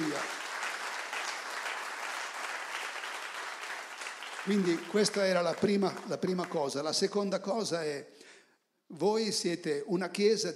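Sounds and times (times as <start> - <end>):
audience applauding: 0.0 - 6.9
speech: 4.4 - 8.3, 8.9 - 10.5.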